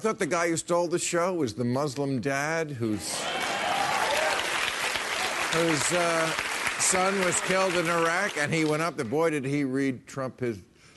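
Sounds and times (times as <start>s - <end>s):
speech: 0.0s - 3.6s, 5.5s - 10.7s
audience applause: 3.1s - 8.8s.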